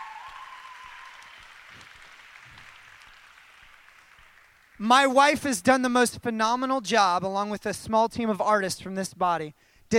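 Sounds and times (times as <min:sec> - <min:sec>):
crowd applauding: 0:00.0 - 0:05.2
speech: 0:04.8 - 0:09.9.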